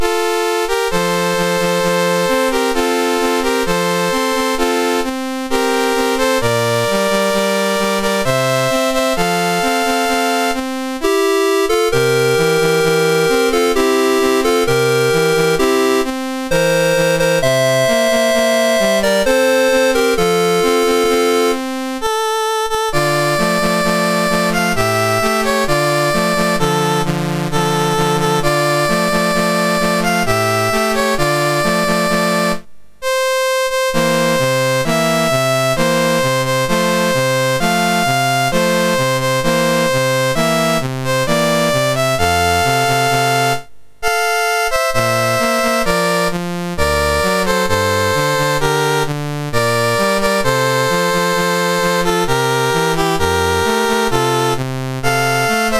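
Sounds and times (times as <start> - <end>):
national anthem on a MOS6581R3 chip: 0.0 - 55.7.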